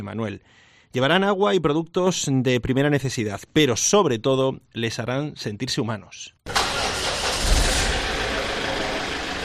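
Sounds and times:
speech: 0.0s - 6.7s
engine of a converted ambulance starting: 6.5s - 9.3s.

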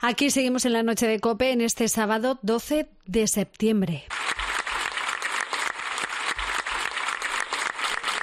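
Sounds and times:
speech: 0.0s - 4.2s
villagers of Alcublas applauding: 4.1s - 8.2s.

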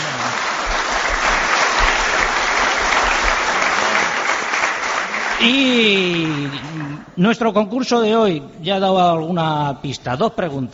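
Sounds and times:
audience applause: 0.0s - 7.1s
speech: 5.4s - 10.7s.

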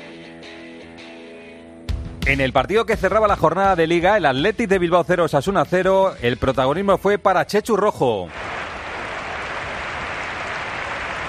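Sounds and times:
speech: 2.3s - 8.4s
stadium fans applauding in tribute: 8.3s - 11.2s.

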